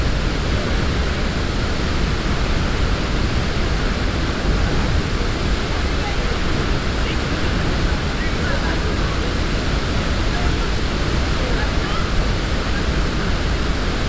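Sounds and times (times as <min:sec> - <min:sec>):
cascading water: 0:00.0 - 0:14.0.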